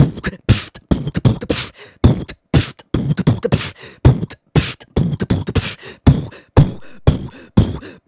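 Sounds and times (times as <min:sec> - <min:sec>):
human beatbox loops: 0:00.0 - 0:08.0.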